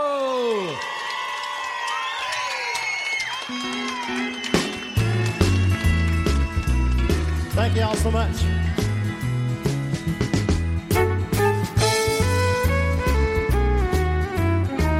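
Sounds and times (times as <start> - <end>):
live concert audience cheering at London Dance Hall, London, Texas: 0.0 - 12.0
instruments playing: 5.0 - 14.9
speech: 7.6 - 8.8.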